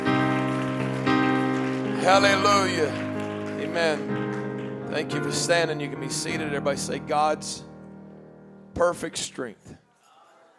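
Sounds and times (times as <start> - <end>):
audience clapping their hands: 0.0 - 6.2
sustained musical chord: 0.0 - 8.8
speech: 2.0 - 3.0, 3.7 - 4.2, 4.9 - 7.7, 8.8 - 9.8.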